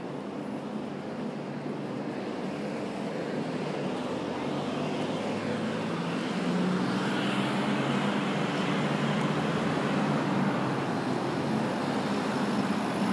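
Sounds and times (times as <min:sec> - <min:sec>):
vehicle rumble and road hiss on Marylebone High Street: 0:00.0 - 0:13.1.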